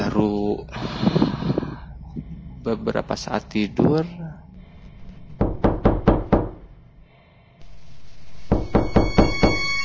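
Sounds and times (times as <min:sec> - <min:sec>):
speech: 0:00.2 - 0:00.9, 0:02.6 - 0:04.2
knocking on a wooden door: 0:05.4 - 0:06.6, 0:08.5 - 0:09.7.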